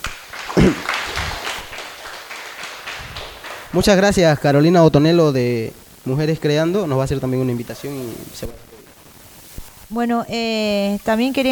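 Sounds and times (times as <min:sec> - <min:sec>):
audience applause: 0:00.0 - 0:05.0
speech: 0:00.7 - 0:00.9, 0:03.7 - 0:08.7, 0:09.9 - 0:11.5.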